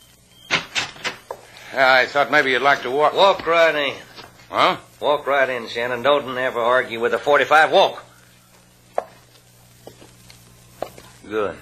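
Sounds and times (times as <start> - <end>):
door being opened: 0.5 - 1.3
speech: 1.7 - 8.1, 11.3 - 11.6.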